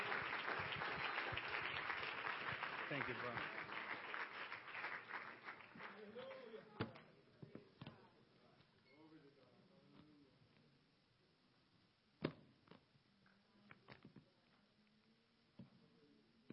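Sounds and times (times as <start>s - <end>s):
audience clapping: 0.0s - 6.7s.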